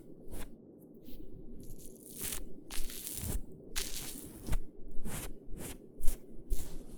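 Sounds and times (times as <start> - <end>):
ear cleaning sounds for sleep: 1.7 - 6.9.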